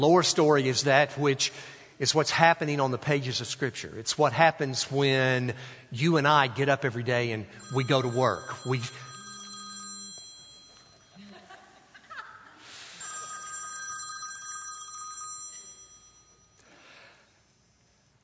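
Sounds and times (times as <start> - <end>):
speech: 0.0 - 9.1
telephone electronic ringtone: 7.6 - 11.3, 12.9 - 17.0.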